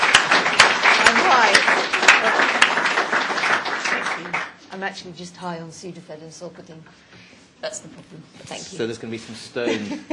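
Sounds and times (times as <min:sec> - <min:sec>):
audience applause: 0:00.0 - 0:04.6
speech: 0:04.8 - 0:10.1
laughter: 0:09.6 - 0:10.1.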